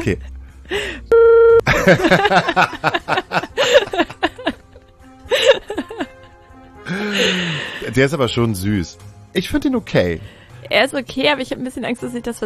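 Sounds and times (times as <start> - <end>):
speech: 0.0 - 1.1, 1.8 - 4.0, 7.1 - 12.4
censorship bleep tone: 1.1 - 1.6
people laughing and chattering: 1.7 - 7.4.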